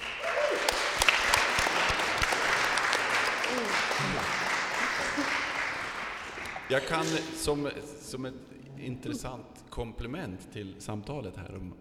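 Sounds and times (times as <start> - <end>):
warm applause from an audience: 0.0 - 7.6
laughter: 0.2 - 11.0
speech: 6.7 - 11.7.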